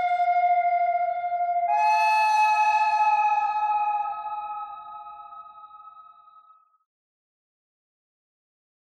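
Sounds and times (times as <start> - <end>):
pentatonic bird melody: 0.0 - 6.1.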